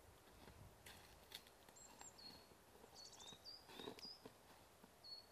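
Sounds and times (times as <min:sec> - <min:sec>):
footsteps in the snow in woods near Hebborn in Germany: 0:00.2 - 0:05.2.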